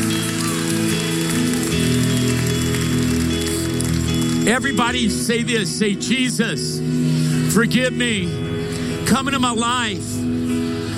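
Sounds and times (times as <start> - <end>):
crowd shouting and cheering: 0.0 - 5.2
speech: 4.5 - 10.4.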